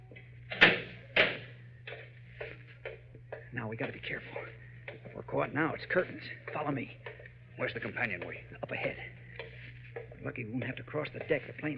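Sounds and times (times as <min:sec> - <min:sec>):
door being shut to lock a man in aboard a ship: 0:00.5 - 0:01.5
speech: 0:03.6 - 0:09.2, 0:10.2 - 0:11.7.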